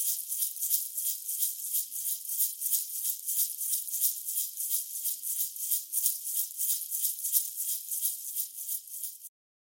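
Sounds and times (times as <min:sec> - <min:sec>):
egg shaker shaking fast: 0:00.0 - 0:09.3.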